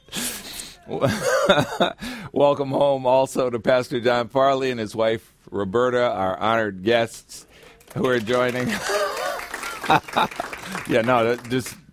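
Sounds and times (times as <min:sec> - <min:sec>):
laughter: 0:00.9 - 0:02.0, 0:08.0 - 0:11.2
speech: 0:00.9 - 0:09.0, 0:09.9 - 0:11.8
crowd applause: 0:07.6 - 0:11.8.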